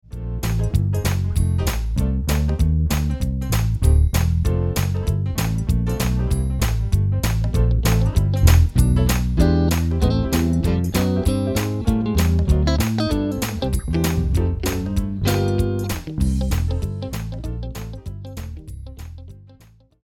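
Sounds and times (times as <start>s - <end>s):
backing track: 0.4s - 19.1s.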